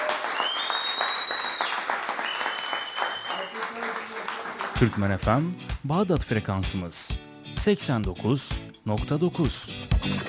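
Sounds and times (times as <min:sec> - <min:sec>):
audience applause at a public event honoring a teacher: 0:00.0 - 0:05.2
speech: 0:04.8 - 0:10.2.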